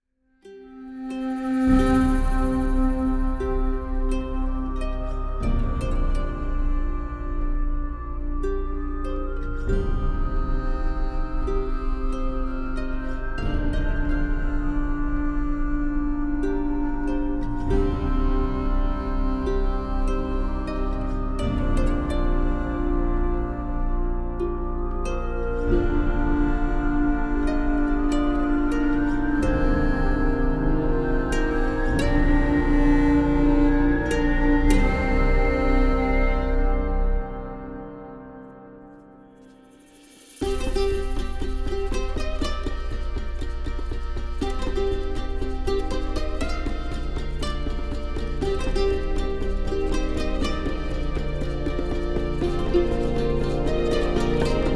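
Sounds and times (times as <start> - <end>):
western music: 0.4 - 54.7.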